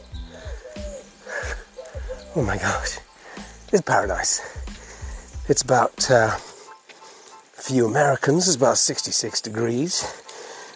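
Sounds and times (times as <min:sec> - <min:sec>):
wood pigeons cooing outdoors: 0:00.0 - 0:06.6
speech: 0:02.4 - 0:03.1, 0:03.7 - 0:04.6, 0:05.5 - 0:06.5, 0:07.7 - 0:10.2.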